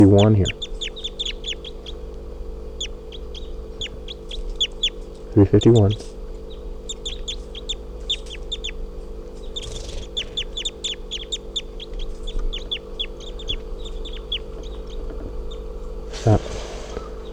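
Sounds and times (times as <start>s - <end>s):
speech: 0.0s - 0.7s, 5.4s - 6.1s
juvenile crossbill calls: 0.0s - 17.3s
steady low hum: 0.0s - 17.3s.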